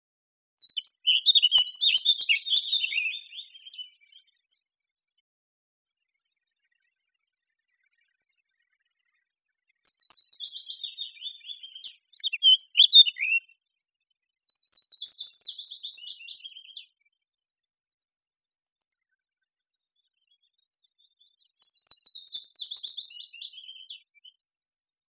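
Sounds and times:
Eurasian blackcap song: 0.6s - 4.4s, 9.8s - 13.6s, 14.4s - 17.0s, 20.9s - 24.4s.

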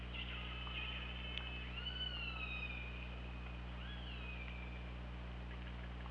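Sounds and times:
continuous low underwater hum: 0.0s - 6.0s
killer whale calls: 0.1s - 3.2s, 3.8s - 4.9s.

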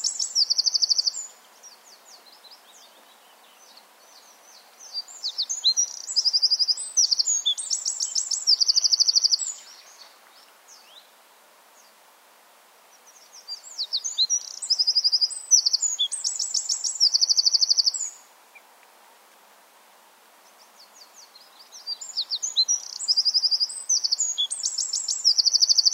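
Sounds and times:
Eurasian wren singing: 0.0s - 11.0s, 13.0s - 18.2s, 20.4s - 25.9s.

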